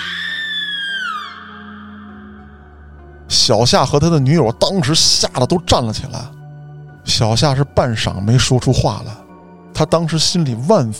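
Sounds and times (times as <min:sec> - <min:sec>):
woman's scream in the stairwell: 0:00.0 - 0:02.6
speech: 0:03.3 - 0:06.4, 0:07.1 - 0:09.2, 0:09.8 - 0:10.9.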